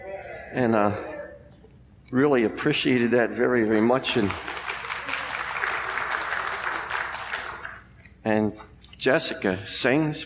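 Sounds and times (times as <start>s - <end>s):
speech: 0.5s - 1.1s, 2.1s - 4.6s, 8.3s - 10.2s
audience applause: 3.4s - 7.8s.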